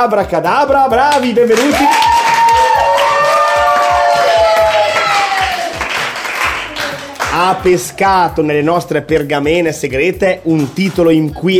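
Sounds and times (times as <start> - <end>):
speech: 0.0 - 2.2, 7.4 - 11.5
audience applause: 1.5 - 7.5.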